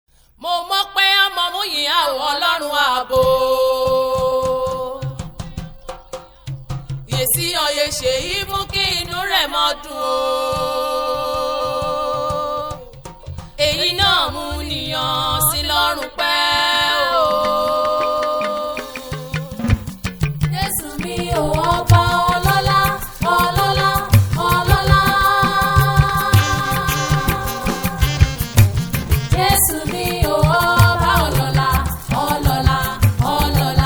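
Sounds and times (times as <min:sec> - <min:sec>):
gospel song in Ijesha dialect: 0:00.4 - 0:33.8.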